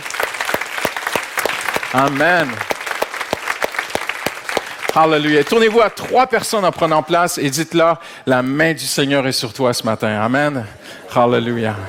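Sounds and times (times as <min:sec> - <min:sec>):
audience clapping: 0:00.0 - 0:07.1
speech: 0:01.9 - 0:02.7, 0:05.0 - 0:11.8.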